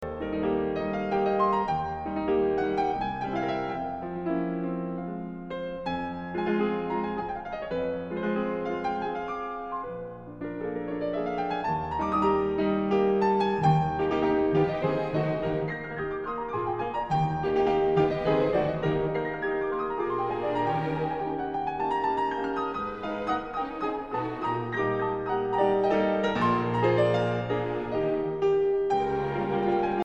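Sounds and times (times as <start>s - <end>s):
classical piano piece in E major: 0.0s - 30.0s.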